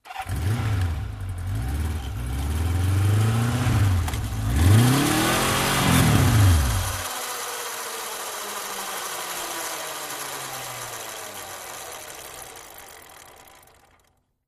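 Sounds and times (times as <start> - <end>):
Kawasaki 750 motorcycle engine idling and revving: 0.0 - 14.4
motorcycle drive wheel spinning freely to a stop: 3.5 - 14.4.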